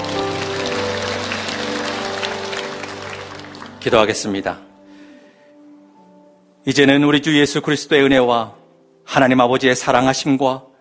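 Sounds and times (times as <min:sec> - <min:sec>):
audience applause: 0:00.0 - 0:04.4
speech: 0:03.8 - 0:04.7, 0:06.6 - 0:10.7.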